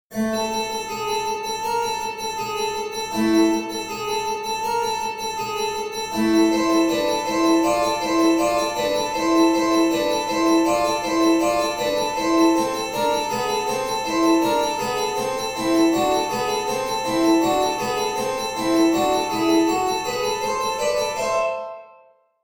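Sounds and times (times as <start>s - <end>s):
harpsichord: 0.1s - 22.1s.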